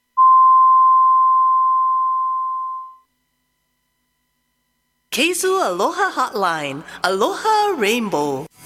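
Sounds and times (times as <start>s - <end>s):
radio time signal beep marking six o'clock: 0.2s - 3.0s
speech: 5.2s - 8.5s.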